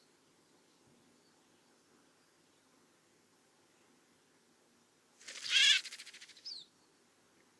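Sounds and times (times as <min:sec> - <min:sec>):
snowfinch calling: 0:05.3 - 0:06.7.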